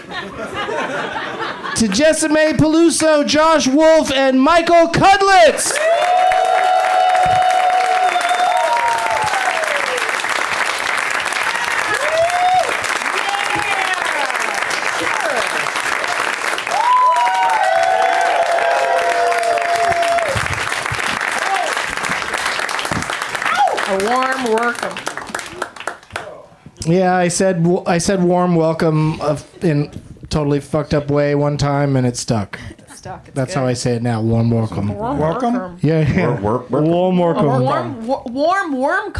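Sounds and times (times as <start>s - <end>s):
laughter: 0.0s - 2.0s
speech: 0.1s - 6.1s, 26.9s - 32.7s, 33.3s - 39.1s
audience whoops and cheers: 5.7s - 24.0s
audience applause welcoming guests: 5.7s - 26.4s.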